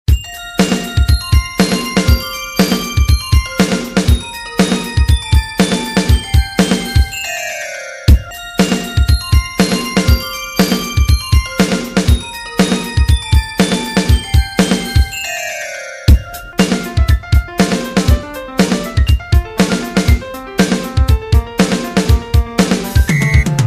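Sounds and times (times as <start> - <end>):
remix music: 0.1 - 23.6.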